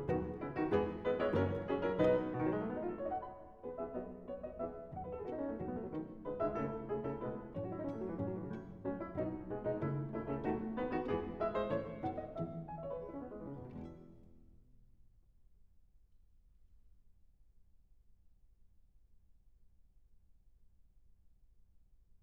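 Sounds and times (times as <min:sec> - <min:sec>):
piano trio: 0:00.0 - 0:14.4.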